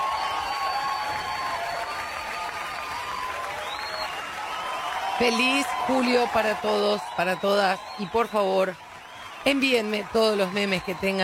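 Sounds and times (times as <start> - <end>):
applause: 0.0 - 11.2
speech: 5.2 - 8.8, 9.4 - 11.2.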